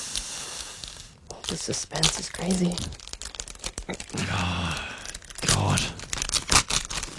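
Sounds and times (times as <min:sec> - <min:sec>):
paper envelope being torn open: 0:01.4 - 0:07.1
speech: 0:01.5 - 0:03.0, 0:03.9 - 0:04.9, 0:05.5 - 0:06.0.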